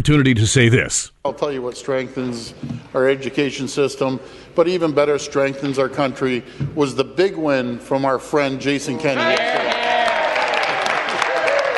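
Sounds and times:
speech: 0:00.0 - 0:09.7
legislature members applauding: 0:09.2 - 0:11.7.

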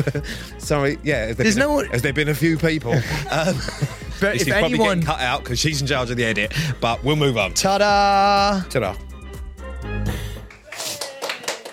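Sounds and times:
laughter: 0:00.0 - 0:00.2, 0:02.8 - 0:05.1
speech: 0:00.0 - 0:09.1
scattered handclaps: 0:10.4 - 0:11.7.

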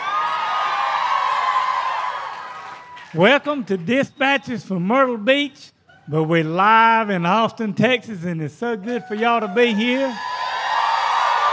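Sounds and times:
live audience cheering and whooping: 0:00.0 - 0:04.5, 0:08.8 - 0:11.5
speech: 0:03.1 - 0:10.3.

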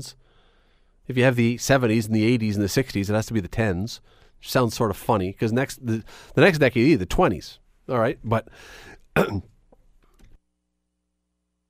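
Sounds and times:
speech: 0:00.0 - 0:00.3, 0:01.1 - 0:09.5
person coughing and choking: 0:09.1 - 0:09.6.

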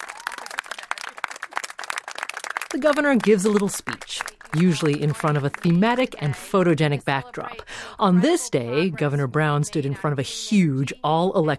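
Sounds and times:
crowd of constituents clapping at a governor's event: 0:00.0 - 0:06.6
speech: 0:02.7 - 0:11.5.

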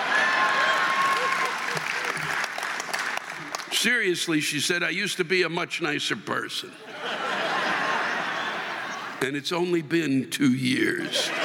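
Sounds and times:
audience applause: 0:00.0 - 0:03.8
speech: 0:03.8 - 0:07.2, 0:09.2 - 0:11.4
laughter: 0:06.7 - 0:09.2, 0:10.7 - 0:11.4.

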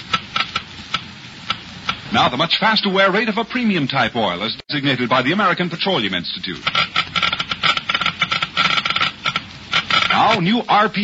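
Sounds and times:
Geiger counter clicking slowly: 0:00.0 - 0:02.1, 0:06.6 - 0:10.6
speech: 0:02.1 - 0:06.9, 0:10.2 - 0:11.0.

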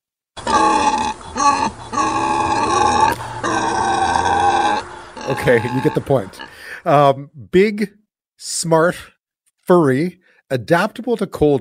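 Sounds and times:
wild boar grunting: 0:00.4 - 0:06.7
speech: 0:05.3 - 0:09.1, 0:09.7 - 0:11.5.

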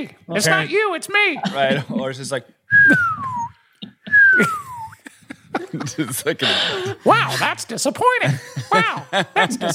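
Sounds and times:
speech: 0:00.0 - 0:03.3, 0:04.4 - 0:04.6, 0:05.7 - 0:09.7
laughter: 0:01.4 - 0:02.4, 0:03.0 - 0:09.7
whistling: 0:02.7 - 0:05.0.

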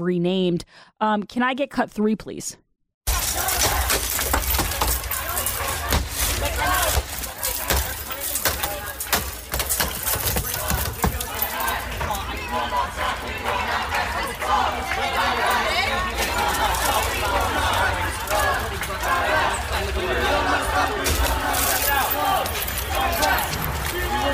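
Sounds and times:
speech: 0:00.0 - 0:02.6
hammers smashing glass: 0:03.1 - 0:12.1, 0:21.0 - 0:24.0
murmur of voices: 0:03.1 - 0:24.3.

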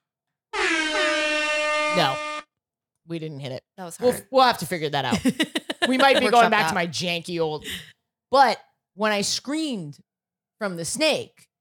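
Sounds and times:
air horn from soundboard: 0:00.5 - 0:02.5
speech: 0:02.0 - 0:02.2, 0:03.1 - 0:11.5
laughter: 0:05.1 - 0:06.8.

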